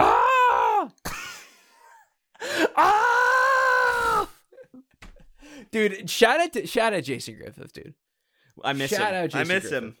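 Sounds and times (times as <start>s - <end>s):
video game character death scream: 0.0s - 1.0s, 2.6s - 4.4s
speech: 5.7s - 9.9s.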